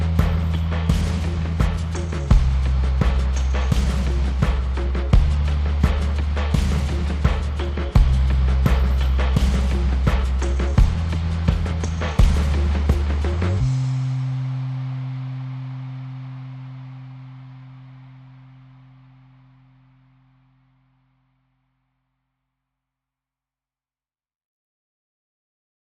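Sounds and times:
drums: 0:00.0 - 0:18.0
bass: 0:00.0 - 0:21.5.

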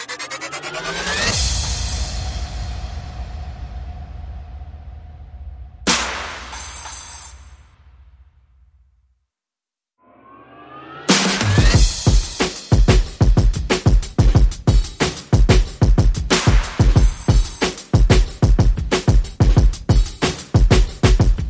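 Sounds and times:
sound effects: 0:00.0 - 0:01.8, 0:10.0 - 0:11.8
percussion: 0:00.0 - 0:04.2, 0:05.8 - 0:07.8, 0:11.1 - 0:21.4.

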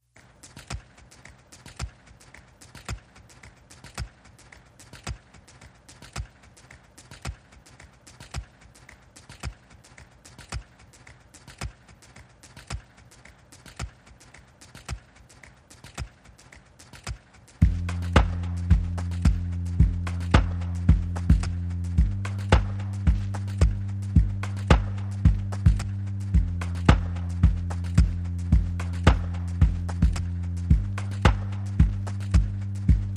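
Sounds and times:
drums: 0:00.3 - 0:33.1
bass: 0:17.6 - 0:33.1.

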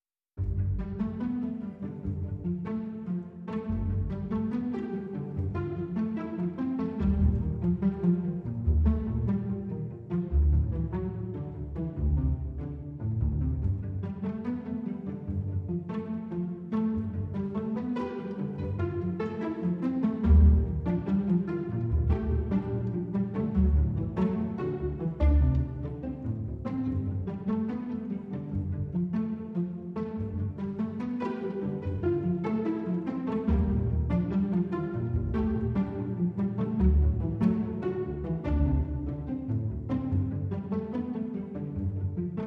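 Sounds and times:
strings: 0:00.4 - 0:42.4.

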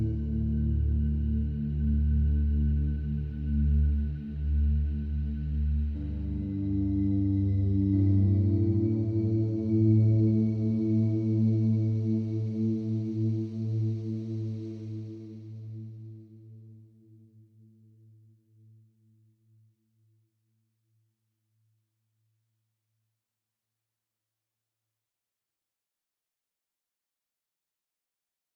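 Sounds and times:
synth pad: 0:00.0 - 0:15.6.

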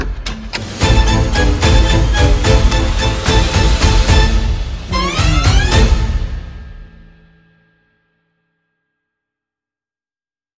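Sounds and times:
strings: 0:00.0 - 0:07.2
percussion: 0:00.0 - 0:09.0
sound effects: 0:00.4 - 0:07.2.

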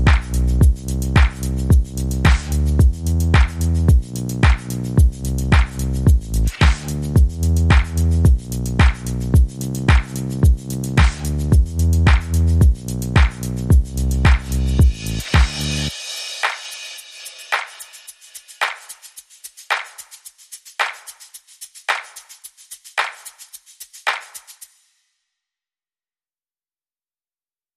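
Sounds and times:
bass: 0:00.0 - 0:15.9
drums: 0:00.0 - 0:19.0.

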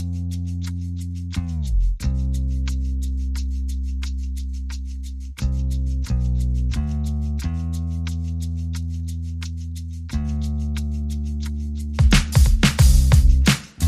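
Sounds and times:
bass: 0:00.0 - 0:13.8
drums: 0:12.0 - 0:13.8.

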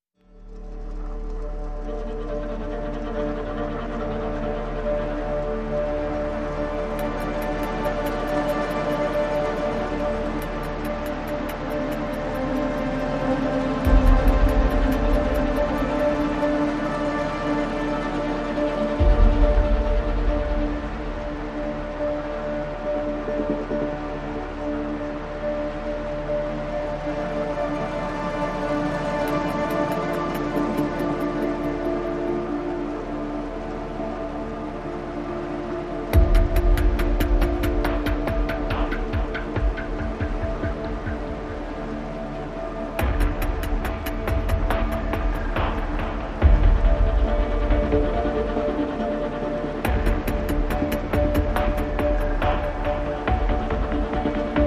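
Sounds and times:
strings: 0:00.2 - 0:54.6.

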